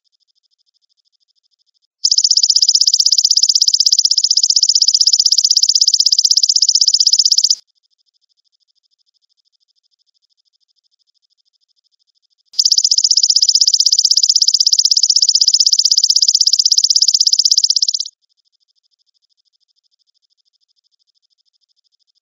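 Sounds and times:
grasshopper trilling: 0:02.0 - 0:07.6, 0:12.6 - 0:18.1.

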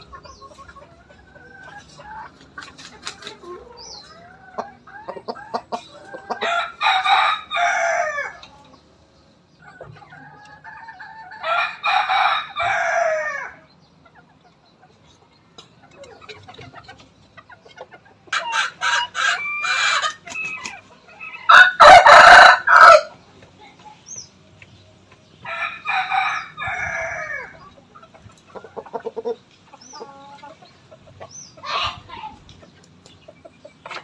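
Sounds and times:
background noise: 0:00.0 - 0:34.0
chicken clucking: 0:00.0 - 0:34.0
rooster crowing: 0:06.4 - 0:08.4, 0:11.3 - 0:13.6, 0:21.4 - 0:23.1, 0:25.4 - 0:27.6.

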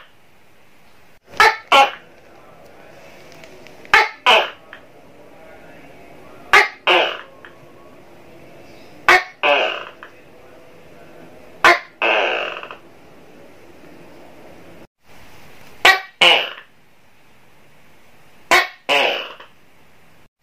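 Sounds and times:
tokay gecko double call: 0:01.3 - 0:02.0, 0:03.9 - 0:04.8, 0:06.5 - 0:07.6, 0:09.0 - 0:10.1, 0:11.6 - 0:12.8, 0:18.5 - 0:19.6.

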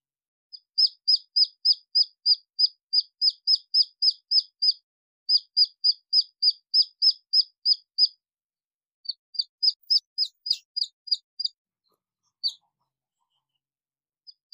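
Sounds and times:
red junglefowl chick peeping: 0:00.5 - 0:08.2, 0:09.1 - 0:11.6, 0:12.2 - 0:13.6.

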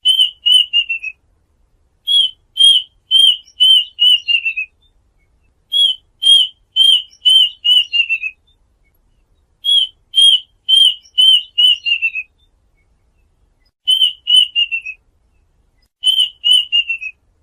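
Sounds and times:
duck whistled calls: 0:00.0 - 0:01.2, 0:02.1 - 0:04.8, 0:05.7 - 0:08.4, 0:09.6 - 0:12.3, 0:13.8 - 0:15.0, 0:16.0 - 0:17.2.

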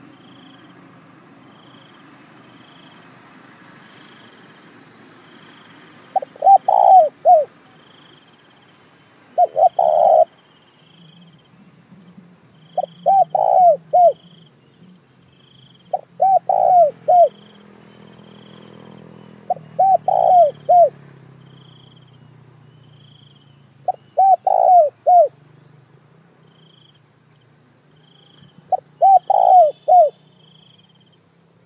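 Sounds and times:
spotted dove cooing: 0:06.1 - 0:07.6, 0:09.3 - 0:10.4, 0:12.7 - 0:14.4, 0:15.9 - 0:17.4, 0:18.8 - 0:21.0, 0:23.8 - 0:25.4, 0:28.2 - 0:30.5.

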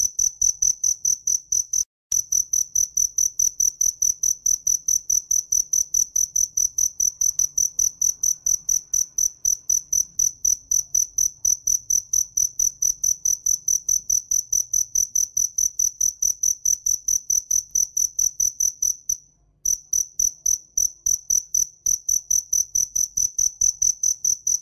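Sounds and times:
cricket chirping: 0:00.0 - 0:24.6.

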